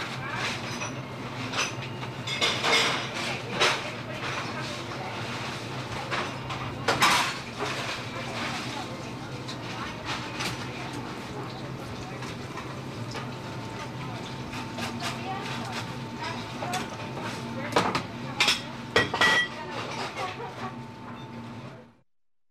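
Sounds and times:
small sparsely populated restaurant ambience: 0.0 - 22.0
dishes clinking in a small restaurant: 0.4 - 4.8, 6.0 - 8.8, 12.0 - 21.3.

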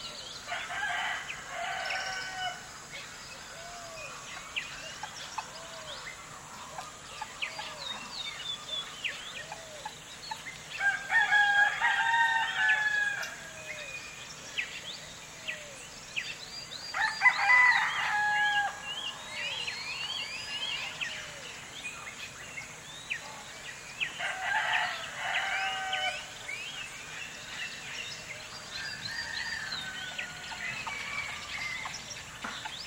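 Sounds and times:
birds singing in the early morning in a village: 0.0 - 32.8
rooster crowing in the morning in a village: 0.5 - 2.7, 10.8 - 13.4, 17.0 - 18.8, 24.2 - 26.3.

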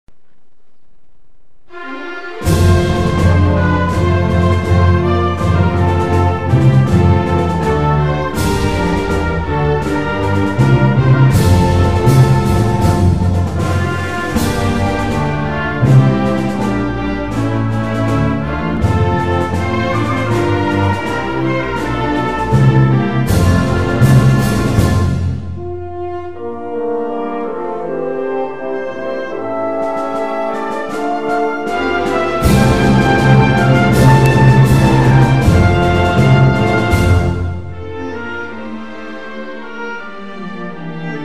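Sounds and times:
national anthem: 1.7 - 38.9.

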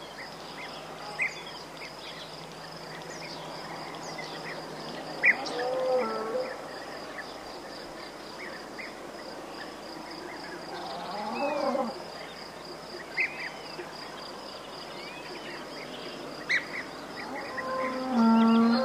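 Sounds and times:
cicada song: 0.0 - 18.8.

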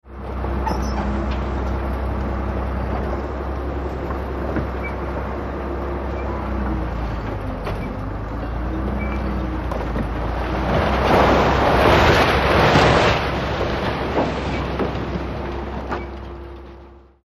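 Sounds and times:
bulldozer destroying a big stone wall: 0.0 - 17.2.

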